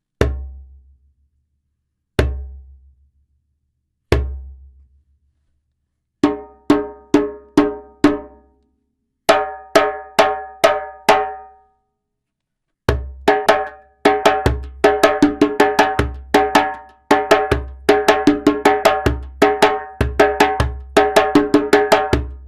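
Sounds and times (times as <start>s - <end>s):
djembe drumming: 6.2s - 8.4s, 9.3s - 11.4s, 12.9s - 22.4s.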